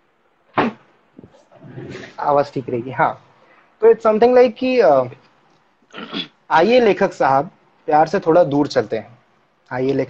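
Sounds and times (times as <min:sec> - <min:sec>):
door being shut with heavy thud: 0:00.6 - 0:01.3
speech: 0:01.8 - 0:05.2, 0:05.9 - 0:09.1, 0:09.7 - 0:10.0.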